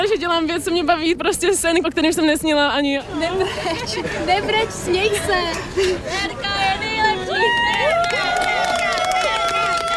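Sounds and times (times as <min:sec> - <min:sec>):
speech: 0:00.1 - 0:06.6
crowd cheering: 0:07.1 - 0:09.9
scattered claps: 0:07.7 - 0:09.9.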